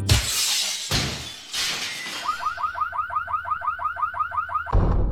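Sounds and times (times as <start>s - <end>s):
car window glass being smashed: 0.1s - 2.6s
car alarm warbling: 2.1s - 4.9s.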